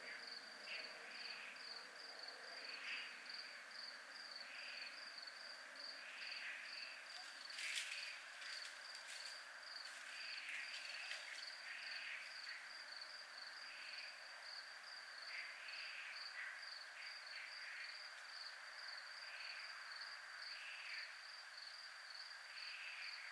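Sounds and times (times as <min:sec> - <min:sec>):
crickets trilling: 0:00.0 - 0:23.3
brief crackle: 0:07.1 - 0:09.4.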